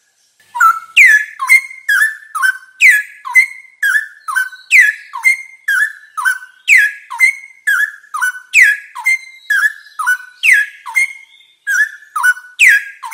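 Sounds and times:
straw-headed bulbul singing: 0.2 - 13.1.

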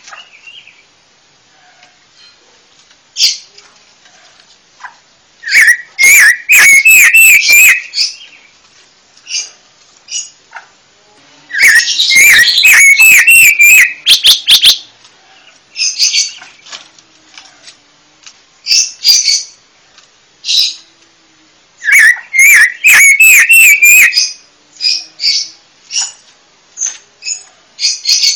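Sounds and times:
panca warna bird chirping: 0.0 - 1.0, 4.2 - 8.6, 9.2 - 10.7, 11.4 - 16.7, 18.6 - 19.6, 20.4 - 21.0, 21.8 - 28.3.

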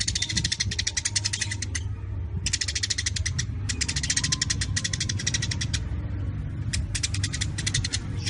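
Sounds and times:
Eurasian tree sparrows chattering: 0.0 - 8.2.

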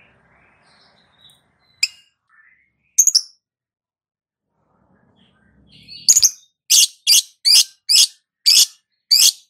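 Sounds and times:
lovebird chattering: 6.1 - 9.4.

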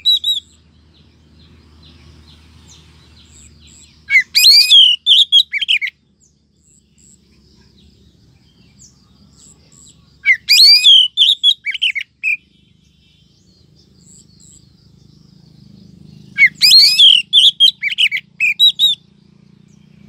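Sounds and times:
Oriental magpie-robin rising whistle: 0.0 - 0.6, 4.0 - 5.9, 10.2 - 12.4, 16.3 - 19.0.

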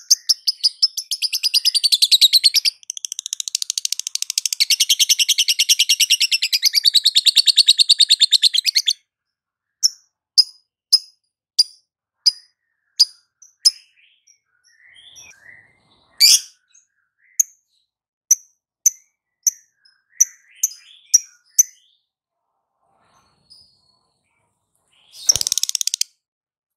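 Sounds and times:
lovebird long chattering calls: 0.0 - 9.0, 25.1 - 26.0.

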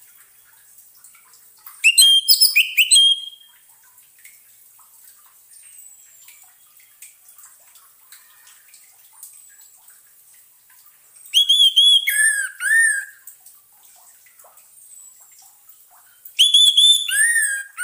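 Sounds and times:
orange-headed thrush whistled song: 1.8 - 3.5, 11.3 - 13.2, 16.4 - 17.8.

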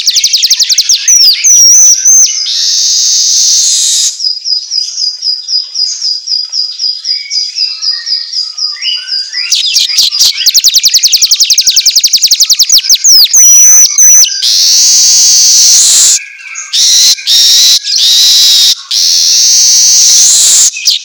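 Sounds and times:
Asian golden weaver song: 0.0 - 4.2, 9.5 - 20.9.

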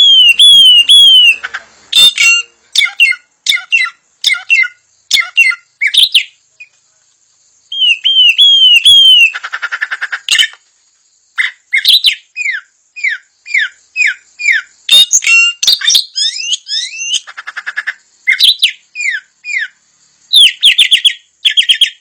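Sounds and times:
puff-throated babbler singing: 0.0 - 6.8, 7.6 - 21.9.

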